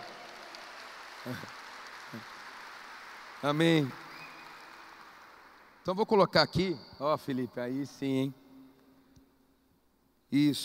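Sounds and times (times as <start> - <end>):
audience applause: 0.0 - 5.9
speech: 1.2 - 2.3, 3.4 - 4.0, 5.8 - 8.4, 10.3 - 10.6.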